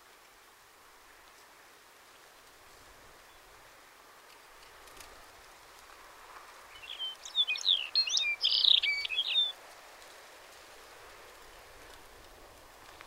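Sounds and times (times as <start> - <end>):
Lapland bunting: 6.7 - 9.6.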